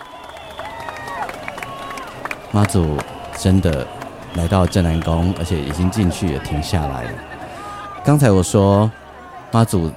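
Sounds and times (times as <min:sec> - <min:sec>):
scattered claps: 0:00.0 - 0:07.5
crowd cheering during a Mazu goddess procession at a temple: 0:00.0 - 0:09.9
speech: 0:02.5 - 0:07.4, 0:08.0 - 0:09.9.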